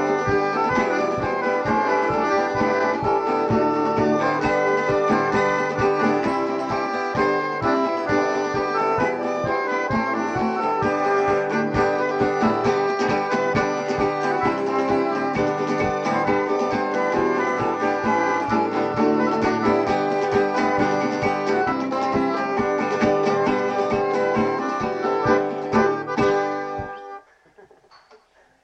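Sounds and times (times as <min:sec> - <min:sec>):
accordion tune: 0:00.0 - 0:27.3.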